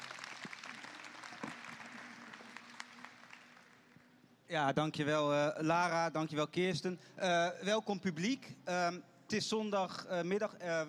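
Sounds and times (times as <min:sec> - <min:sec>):
audience applauding: 0:00.0 - 0:04.0
speech: 0:04.5 - 0:10.8.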